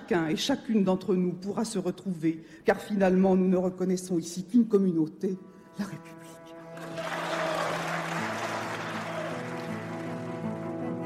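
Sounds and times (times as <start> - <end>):
speech: 0.1 - 6.4
applause from one side of parliament: 6.7 - 11.0.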